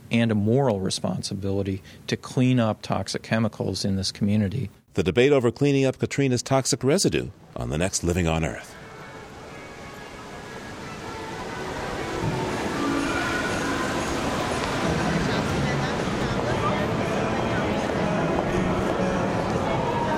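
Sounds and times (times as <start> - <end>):
speech: 0.1 - 8.8
noise of busy underground subway corridor: 8.4 - 20.1
indistinct murmur of voices: 8.5 - 20.1.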